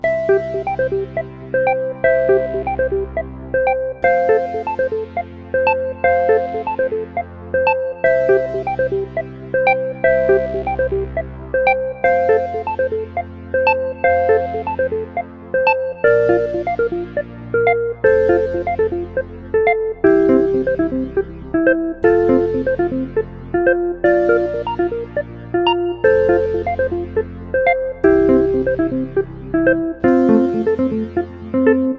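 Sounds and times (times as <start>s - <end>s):
looping music: 0.0s - 31.9s.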